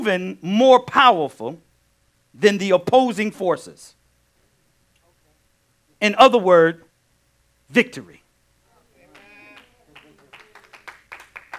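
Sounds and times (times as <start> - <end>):
speech: 0.0 - 1.7, 2.3 - 4.0, 6.0 - 6.8, 7.7 - 8.2
few people clapping: 9.1 - 11.5.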